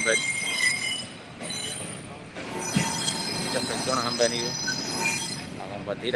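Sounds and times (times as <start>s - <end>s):
high metallic squeal from train wheels: 0.0s - 5.7s
train passing: 0.0s - 6.1s
speech: 0.1s - 0.6s, 3.9s - 4.7s, 5.9s - 6.1s.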